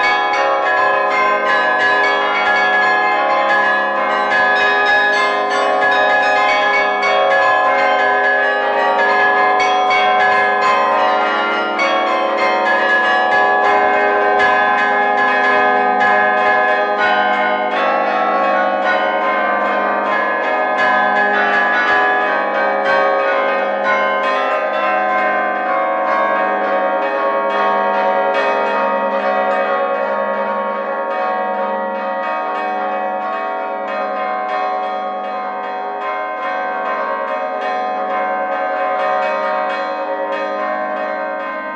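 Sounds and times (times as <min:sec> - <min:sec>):
carillon bells: 0:00.0 - 0:41.7.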